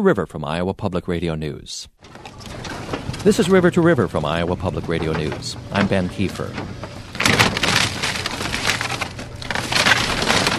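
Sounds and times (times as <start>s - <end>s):
speech: 0.0s - 2.3s, 3.2s - 6.8s
track hoe clearing tornado debris in Joplin Missouri: 2.1s - 10.5s.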